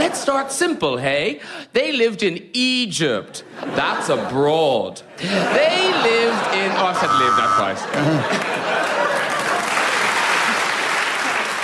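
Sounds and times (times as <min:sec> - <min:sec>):
speech: 0:00.1 - 0:09.0
laughter: 0:03.4 - 0:11.5
crowd applause: 0:06.3 - 0:11.6.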